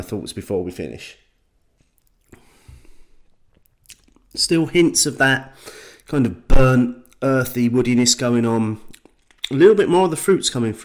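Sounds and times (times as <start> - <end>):
speech: 0.0 - 1.3, 4.4 - 8.9, 9.5 - 10.8
hiss: 0.8 - 7.4
person sipping and tasting a Christmas beer: 1.8 - 4.4.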